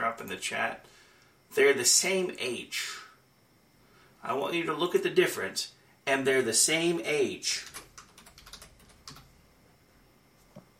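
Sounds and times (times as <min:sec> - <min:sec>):
speech: 0:00.3 - 0:03.0, 0:04.2 - 0:07.8
typing on a computer keyboard: 0:07.6 - 0:09.3.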